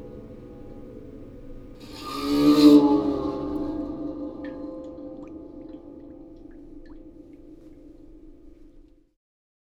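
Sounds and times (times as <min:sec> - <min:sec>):
water harp: 0:00.0 - 0:09.0.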